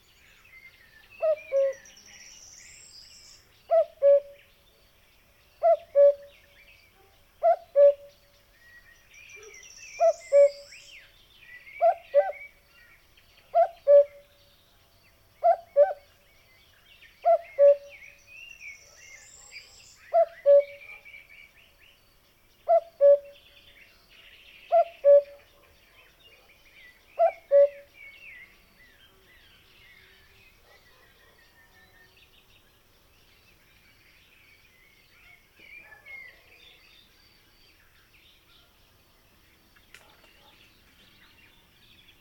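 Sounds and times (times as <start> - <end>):
small birds twittering and chirping: 0.0 - 42.1
cuckoo calling cu-coo: 1.2 - 1.9, 3.7 - 4.4, 5.6 - 6.3, 7.4 - 8.1, 9.4 - 10.8, 11.8 - 12.6, 13.5 - 14.2, 15.4 - 16.0, 17.2 - 18.0, 20.1 - 21.0, 22.7 - 23.4, 24.7 - 25.5, 27.2 - 27.9.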